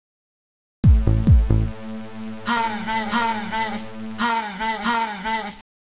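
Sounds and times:
techno music: 0.9 - 5.5.

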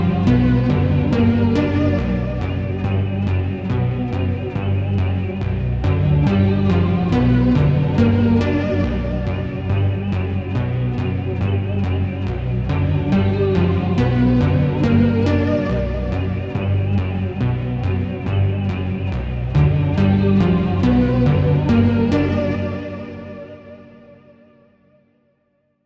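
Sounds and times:
techno music: 0.0 - 24.0.

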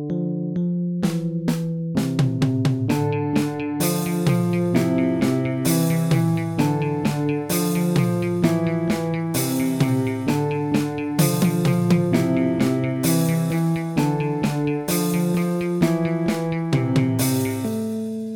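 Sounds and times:
background music: 0.1 - 18.2.

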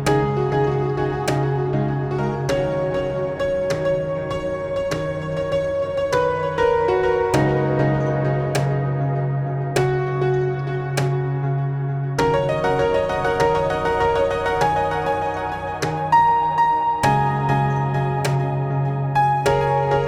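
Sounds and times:
ambient piano: 0.0 - 20.0.

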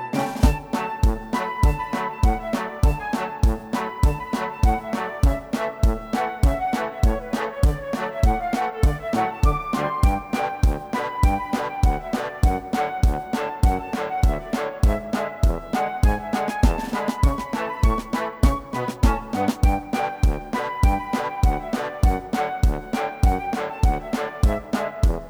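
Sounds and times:
march two-step music: 0.2 - 25.2.

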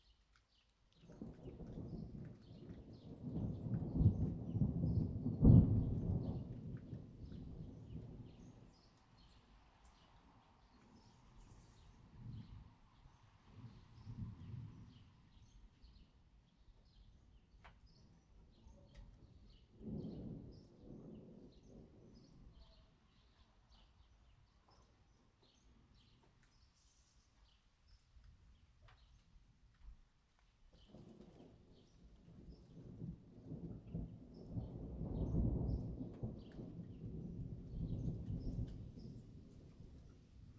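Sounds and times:
thunder: 1.2 - 8.6, 19.0 - 22.4, 30.9 - 40.5.

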